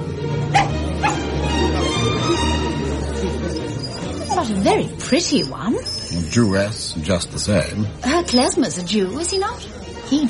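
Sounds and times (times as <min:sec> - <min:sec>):
low murmur: 0:00.0 - 0:10.2
small lapdog yipping: 0:00.5 - 0:01.2, 0:03.8 - 0:04.6
speech: 0:04.4 - 0:10.2.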